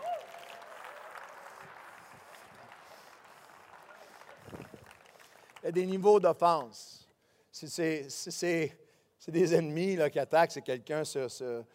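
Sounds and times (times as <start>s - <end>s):
audience applause: 0.0s - 5.8s
speech: 5.6s - 7.0s, 7.6s - 11.7s.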